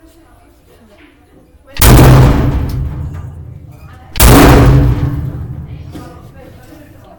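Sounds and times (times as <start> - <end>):
boom: 1.8 - 6.4.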